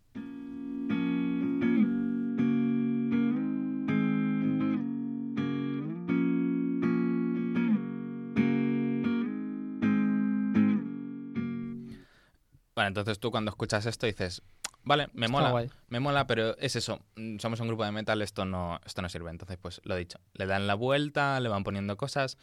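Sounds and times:
acoustic guitar strumming chords: 0.1s - 12.0s
speech: 12.8s - 22.4s.

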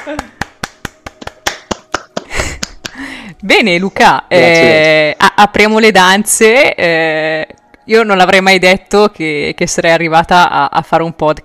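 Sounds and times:
speech: 0.0s - 0.4s, 3.3s - 11.4s
applause: 0.0s - 3.0s.

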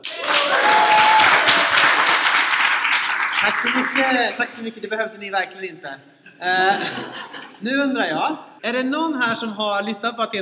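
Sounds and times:
live audience applause: 0.0s - 4.6s
speech: 3.4s - 10.3s
laughter: 6.3s - 7.6s.

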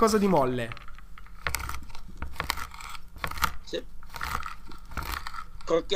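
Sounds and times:
speech: 0.0s - 0.8s, 3.7s - 3.9s, 5.7s - 5.9s
knife chopping a carrot: 1.4s - 5.4s.

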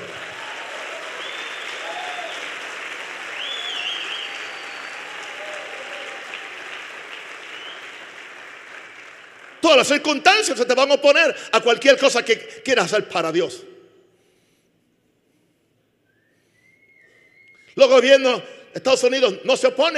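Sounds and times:
audience applause: 0.0s - 10.0s
speech: 9.6s - 13.7s, 17.8s - 19.9s.

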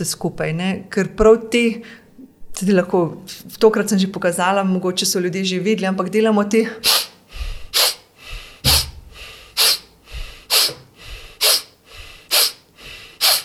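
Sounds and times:
speech: 0.0s - 2.0s, 2.6s - 7.1s
short sharp inhalations through the nose: 6.8s - 13.4s.

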